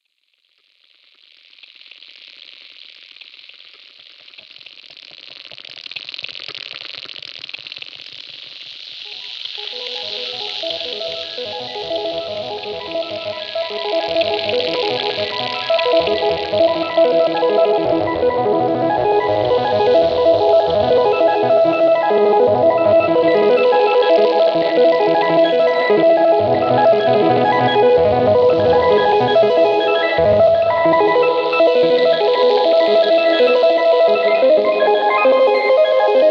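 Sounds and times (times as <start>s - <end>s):
ambient music: 10.0s - 36.2s.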